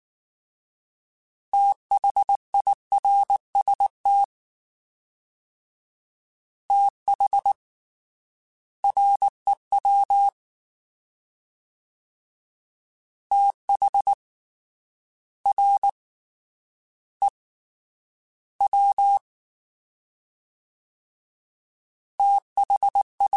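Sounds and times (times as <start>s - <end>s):
fast CW Morse code groups: 1.6s - 4.3s, 6.7s - 7.6s, 8.8s - 10.4s, 13.3s - 14.2s, 18.6s - 19.2s, 22.2s - 23.3s.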